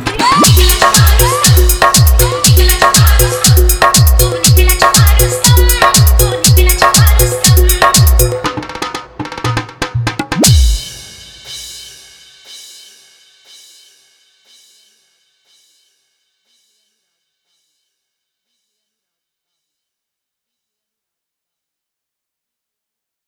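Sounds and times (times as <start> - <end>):
bass mix: 0.2 - 8.5, 10.4 - 11.3.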